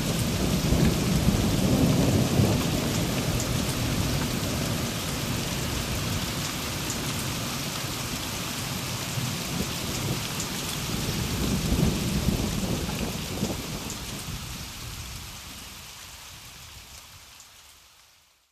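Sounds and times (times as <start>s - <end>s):
thunderstorm: 0.0s - 8.2s, 9.0s - 15.5s.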